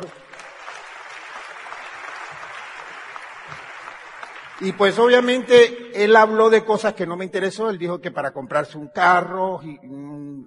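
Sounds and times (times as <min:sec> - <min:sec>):
speech: 0:00.0 - 0:00.2, 0:04.6 - 0:10.4
audience applause: 0:00.0 - 0:05.3.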